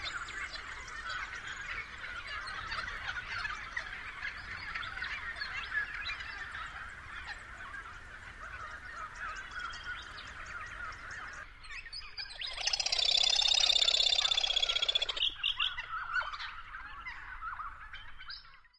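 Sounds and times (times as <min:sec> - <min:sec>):
other birds chattering: 0:00.0 - 0:11.5, 0:12.1 - 0:18.2
Australasian grebe trill: 0:12.4 - 0:15.8.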